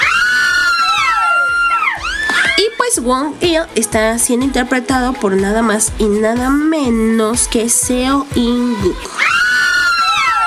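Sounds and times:
high-pitched scream sound effect: 0:00.0 - 0:03.0, 0:09.0 - 0:10.4
speech: 0:02.9 - 0:09.3.

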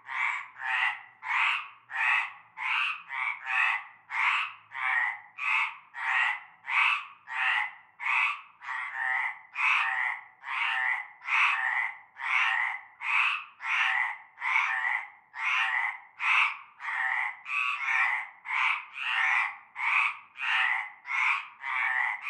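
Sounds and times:
frog chorus croaking in a concrete basin of stagnant water: 0:00.0 - 0:22.2.

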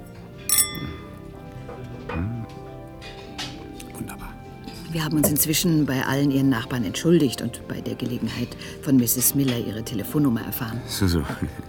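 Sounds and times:
glasses clinking in a toast: 0:00.4 - 0:01.5, 0:05.2 - 0:05.6
speech: 0:04.9 - 0:11.6.

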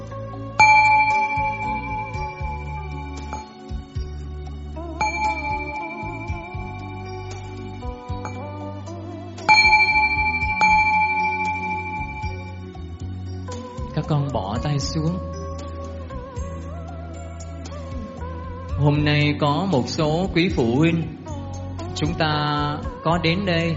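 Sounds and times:
ceremonial bell strokes: 0:00.6 - 0:08.6, 0:09.4 - 0:13.7
speech: 0:14.8 - 0:15.4, 0:18.8 - 0:21.2, 0:22.0 - 0:23.7.

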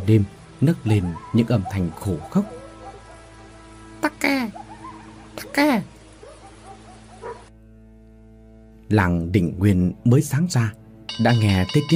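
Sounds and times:
speech: 0:00.1 - 0:02.6, 0:04.2 - 0:04.6, 0:05.4 - 0:05.9, 0:08.9 - 0:11.9
dogs barking: 0:00.6 - 0:03.8, 0:04.4 - 0:07.6.

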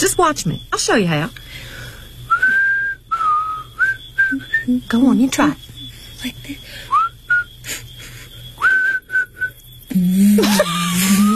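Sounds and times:
speech: 0:00.0 - 0:01.8, 0:04.3 - 0:05.6, 0:06.2 - 0:07.0, 0:10.0 - 0:11.3
person whistling a tune: 0:02.3 - 0:04.7, 0:06.9 - 0:07.5, 0:08.6 - 0:10.0.

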